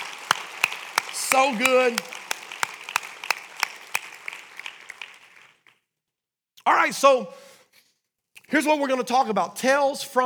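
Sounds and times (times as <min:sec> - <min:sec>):
audience cheering: 0:00.0 - 0:05.6
speech: 0:01.3 - 0:02.2, 0:06.6 - 0:07.5, 0:08.5 - 0:10.2.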